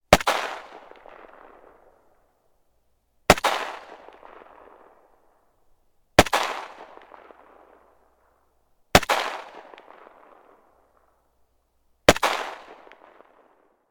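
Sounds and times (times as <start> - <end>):
AK-47 gunshots: 0.1 - 1.8, 3.3 - 4.9, 6.2 - 7.9, 9.0 - 10.6, 12.1 - 13.4.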